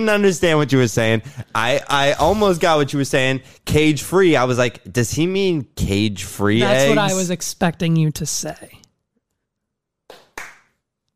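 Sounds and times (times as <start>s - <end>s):
speech: 0.0s - 8.8s
hand clapping: 10.1s - 10.8s.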